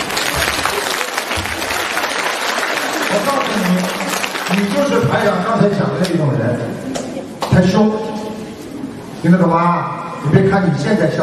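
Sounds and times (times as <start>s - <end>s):
audience applause: 0.0s - 5.3s
speech: 3.2s - 8.2s, 9.2s - 11.2s.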